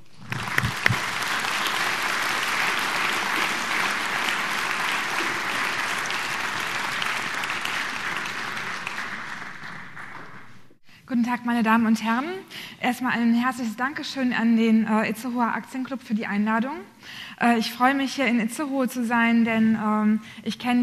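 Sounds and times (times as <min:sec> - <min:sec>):
audience applause: 0:00.0 - 0:10.7
speech: 0:11.3 - 0:20.8.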